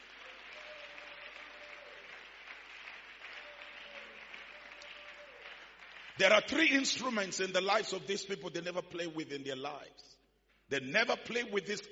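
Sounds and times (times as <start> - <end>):
audience clapping loudly: 0.0 - 7.3
speech: 6.2 - 11.9.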